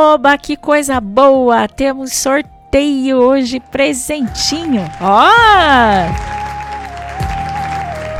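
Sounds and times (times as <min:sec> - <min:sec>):
speech: 0:00.0 - 0:06.4
applause sound effect: 0:04.3 - 0:08.1.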